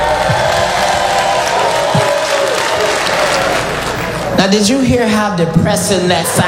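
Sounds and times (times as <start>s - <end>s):
sparse audience clapping: 0.0s - 4.6s
speech: 4.4s - 6.4s.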